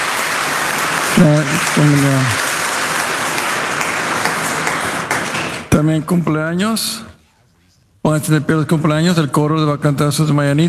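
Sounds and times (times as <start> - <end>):
crowd applauding children in church: 0.0 - 5.7
speech: 1.2 - 2.5, 5.8 - 7.1, 8.0 - 10.6.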